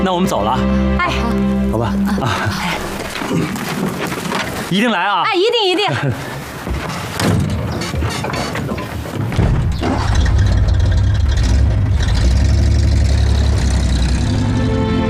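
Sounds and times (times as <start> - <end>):
speech: 0.2 - 6.3
clatter of activity: 7.2 - 14.2
car engine running as the vehicle pulls away: 10.1 - 15.0.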